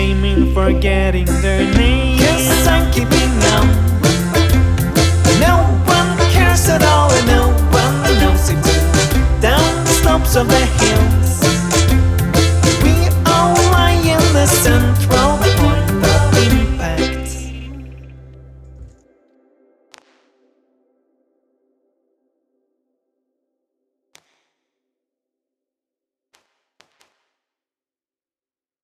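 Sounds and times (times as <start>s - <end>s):
chord conversation: 0.1s - 18.9s.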